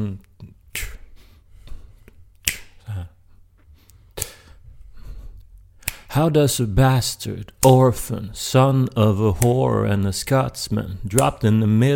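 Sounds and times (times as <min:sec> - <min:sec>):
finger snapping as a slow beat: 0:00.7 - 0:01.1, 0:02.4 - 0:02.8, 0:04.2 - 0:04.5, 0:05.8 - 0:06.1
speech: 0:06.2 - 0:11.9.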